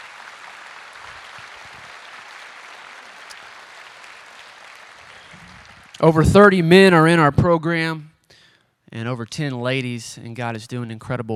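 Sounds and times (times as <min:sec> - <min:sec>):
audience applause: 0:00.0 - 0:06.8
speech: 0:06.0 - 0:08.1, 0:08.9 - 0:11.3.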